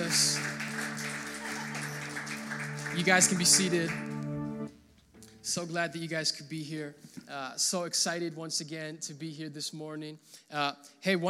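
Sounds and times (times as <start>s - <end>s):
audience clapping hands: 0.0s - 4.7s
speech: 2.9s - 4.2s, 5.5s - 11.2s.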